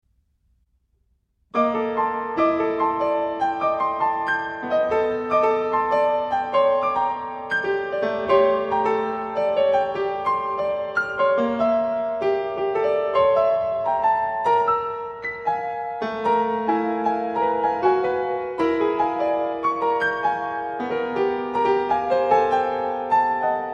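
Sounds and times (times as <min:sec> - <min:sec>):
piano piece: 0:01.4 - 0:23.7.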